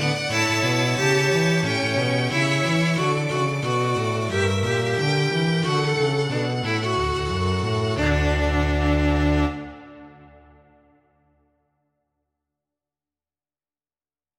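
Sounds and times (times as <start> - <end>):
jazz Christmas song: 0.0 - 10.7.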